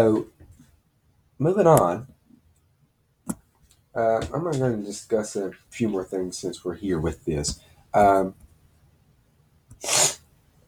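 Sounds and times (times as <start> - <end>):
speech: 0.0 - 0.3, 1.4 - 2.1, 4.0 - 8.4, 9.8 - 10.1
person sniffling from allergies: 9.8 - 10.2.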